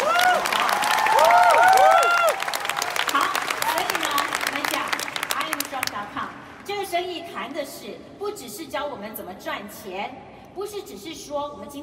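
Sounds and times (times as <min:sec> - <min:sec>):
audience applause: 0:00.0 - 0:05.9
speech: 0:08.7 - 0:11.8.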